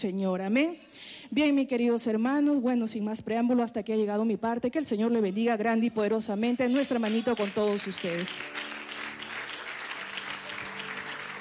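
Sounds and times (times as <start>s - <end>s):
speech: 0.0s - 8.7s
audience applauding: 6.6s - 11.4s.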